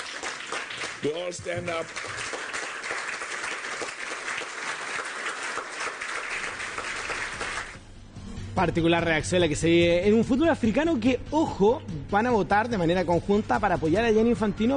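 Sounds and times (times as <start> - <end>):
standing audience applauding: 0.0 - 7.8
speech: 1.0 - 2.3, 8.6 - 14.7.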